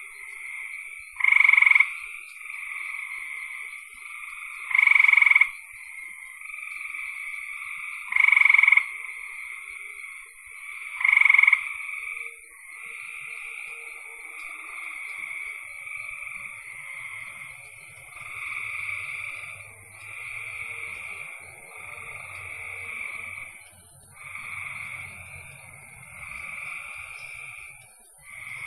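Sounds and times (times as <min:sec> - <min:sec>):
frog chorus: 0:00.0 - 0:28.6
low rumbling noise: 0:15.9 - 0:28.6.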